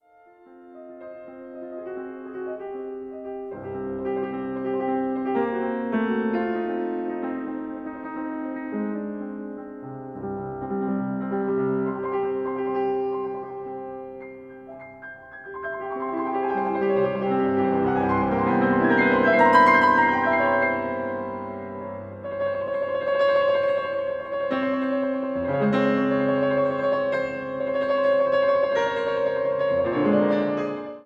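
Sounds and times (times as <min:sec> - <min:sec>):
allegro etude in C major: 0:00.6 - 0:31.0.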